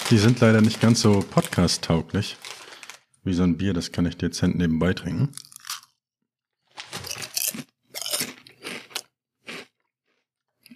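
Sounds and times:
barbecue potato chips being chewed: 0.0s - 3.0s, 5.3s - 6.0s, 6.7s - 10.7s
speech: 0.1s - 2.6s, 3.2s - 5.5s.

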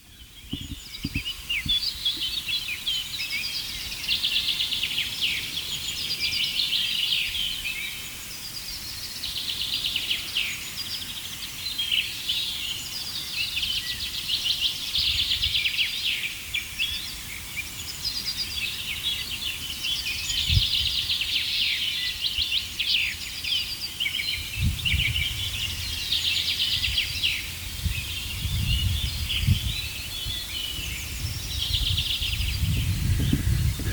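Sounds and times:
dawn chorus of many songbirds: 0.0s - 33.9s
low thumps and rustles: 0.5s - 1.8s.

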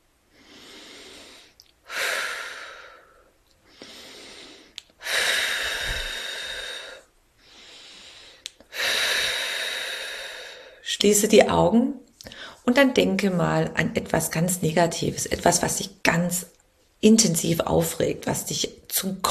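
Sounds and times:
deep breathing in and out: 0.3s - 10.9s
speech: 11.0s - 19.2s.

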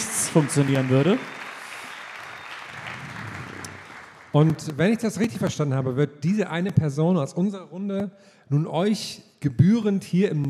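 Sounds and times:
faint audience applause at a stage event: 0.0s - 5.1s
speech: 0.4s - 1.4s, 4.4s - 10.4s.

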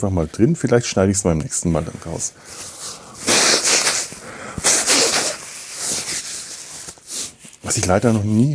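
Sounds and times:
speech: 0.0s - 3.0s, 7.7s - 8.5s
nose blowing: 2.4s - 7.4s
nasal spray: 3.2s - 6.4s.

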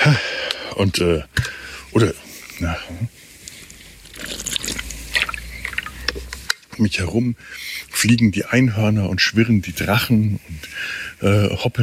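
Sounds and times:
speech: 0.0s - 3.2s, 6.8s - 11.8s
water sloshing: 3.3s - 6.7s
gulping water: 4.1s - 6.3s.

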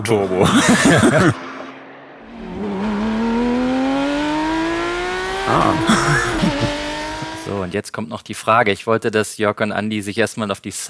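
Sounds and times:
speech: 0.0s - 1.5s, 5.5s - 6.6s, 7.6s - 10.8s
Porsche GT sports car engine revving: 0.2s - 7.6s
laughter: 0.4s - 1.4s, 5.7s - 6.8s.

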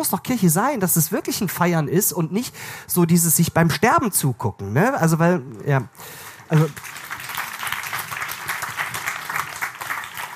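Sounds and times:
speech: 0.0s - 7.0s
audience clapping: 6.1s - 10.3s.

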